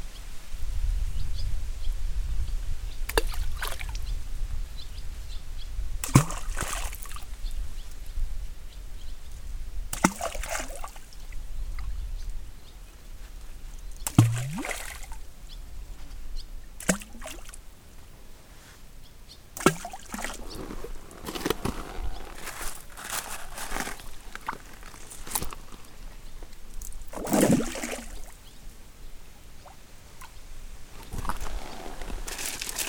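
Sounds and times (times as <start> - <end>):
steady low rustle and rumble of wind: 0.0 - 32.8
stones thrown into lake water splashing: 3.1 - 4.0, 6.0 - 7.3, 9.9 - 11.1, 14.0 - 15.2, 16.8 - 17.6, 19.6 - 25.6, 27.1 - 28.3.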